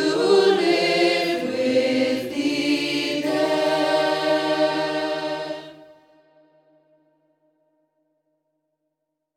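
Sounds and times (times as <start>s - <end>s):
choir singing a Christmas carol: 0.0s - 6.6s.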